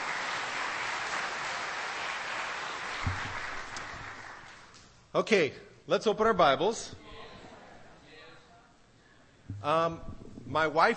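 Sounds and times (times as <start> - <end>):
audience round of applause: 0.0 - 4.7
speech: 5.2 - 7.0, 9.6 - 10.9.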